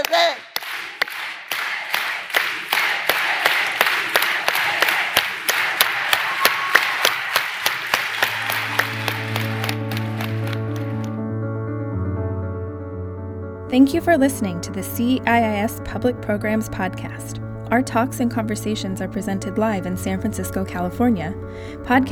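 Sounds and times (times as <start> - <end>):
crowd clapping in unison accelerating into applause: 0.0 - 11.2
sustained musical tones: 8.2 - 22.1
speech: 13.7 - 22.1.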